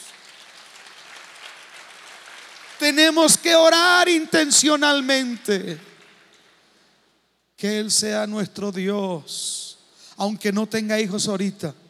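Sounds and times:
audience applause: 0.0 - 3.1
speech: 2.8 - 5.9, 7.6 - 11.8.

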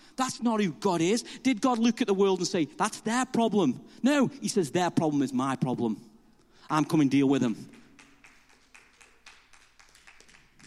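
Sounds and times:
speech: 0.2 - 6.1, 6.7 - 7.8
scattered handclaps from a few people in a room: 7.6 - 10.6.

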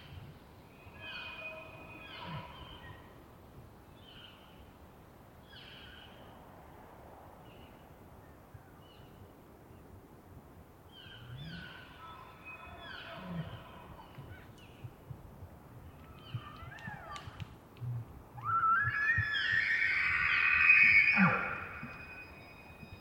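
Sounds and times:
bull elk screaming bugle: 18.4 - 22.5.

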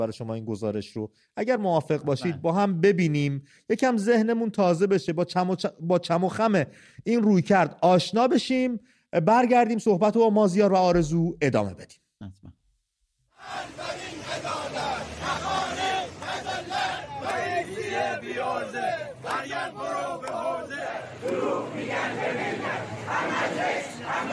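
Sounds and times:
speech: 0.0 - 12.5
protesting retirees shouting in the street: 13.4 - 24.3.

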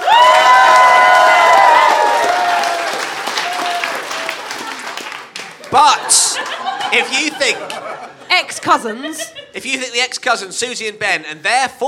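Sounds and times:
high cheers and whoops: 0.0 - 5.0
crowd clapping: 0.0 - 8.1
laughter: 4.1 - 9.8
speech: 5.7 - 7.7, 8.3 - 11.8.

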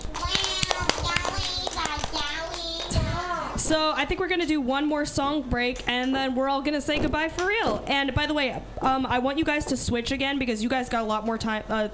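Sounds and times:
children's group applause: 0.0 - 2.4
speech: 3.7 - 11.9.

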